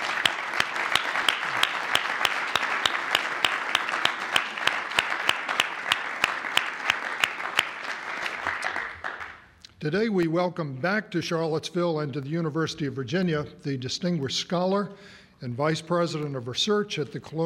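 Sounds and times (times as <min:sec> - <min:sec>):
audience applauding to thank sponsors of an annual lecture on American history: 0:00.0 - 0:09.5
speech: 0:09.8 - 0:17.4.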